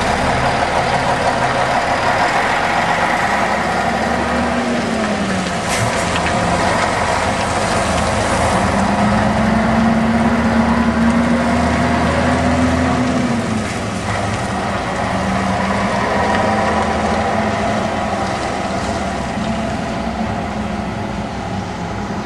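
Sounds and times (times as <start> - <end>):
Pegaso Troner 370 hp truck engine: 0.0 - 22.2.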